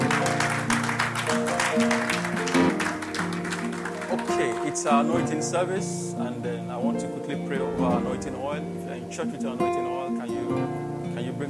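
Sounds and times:
audience clapping: 0.0s - 5.3s
speech: 4.8s - 11.4s.

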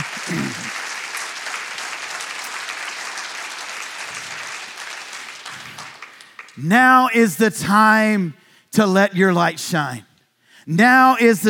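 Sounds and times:
audience clapping: 0.0s - 7.1s
speech: 6.6s - 11.4s.

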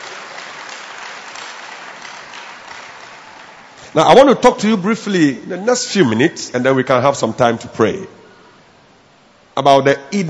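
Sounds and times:
church congregation applauding a visiting guest at an evening worship service in Accra: 0.0s - 4.4s
speech: 3.9s - 8.2s, 9.6s - 10.2s.

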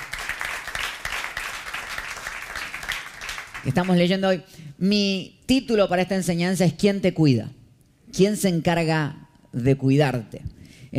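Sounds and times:
audience applause: 0.0s - 4.0s
speech: 3.6s - 10.9s.

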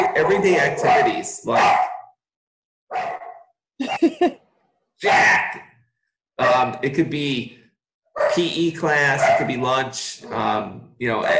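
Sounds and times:
pet dogs barking: 0.0s - 2.1s, 2.9s - 3.4s, 6.4s - 6.7s, 8.2s - 10.5s
speech: 0.3s - 1.9s, 5.0s - 5.6s, 6.4s - 7.6s, 8.2s - 11.3s.

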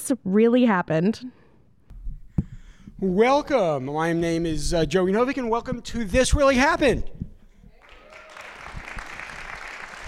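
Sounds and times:
speech: 0.1s - 1.4s, 3.0s - 7.2s
spontaneous audience applause: 7.8s - 10.0s.

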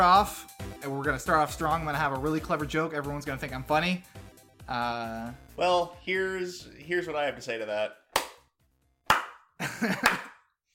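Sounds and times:
speech: 0.0s - 8.0s, 9.8s - 10.3s
clapping: 8.2s - 8.4s, 9.1s - 10.4s.

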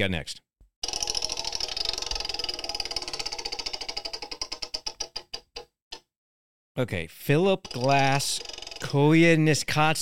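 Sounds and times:
speech: 0.0s - 0.4s, 6.8s - 9.9s
prize wheel spinning and ticking: 0.8s - 5.7s, 7.4s - 9.8s.

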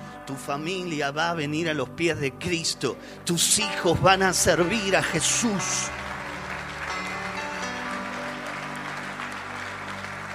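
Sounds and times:
low sustained musical tone: 0.0s - 10.3s
speech: 0.3s - 6.0s
audience applause: 4.6s - 10.3s.

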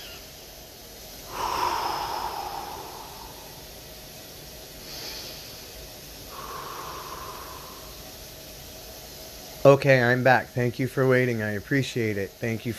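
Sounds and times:
slow deliberate breathing: 1.0s - 9.3s
speech: 9.7s - 12.7s.

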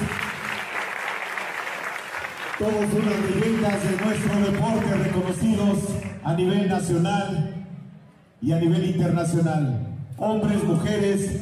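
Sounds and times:
applause: 0.0s - 6.2s
speech: 2.6s - 7.6s, 8.4s - 11.4s.

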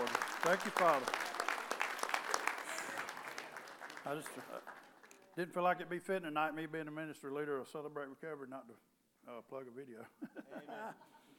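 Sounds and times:
audience hand clapping: 0.0s - 5.4s
speech: 0.4s - 1.2s, 4.1s - 4.7s, 5.4s - 11.2s
laughter: 10.2s - 11.3s.

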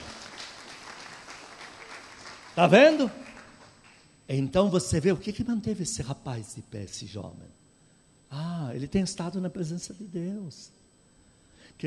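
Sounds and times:
audience applauding: 0.0s - 4.0s
speech: 2.6s - 3.2s, 4.3s - 7.6s, 8.3s - 10.8s.

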